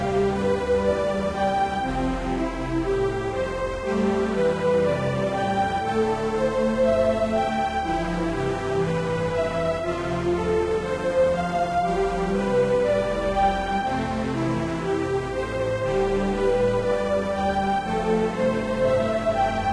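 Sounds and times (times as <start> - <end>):
romantic chill loopable music: 0.0 - 19.7.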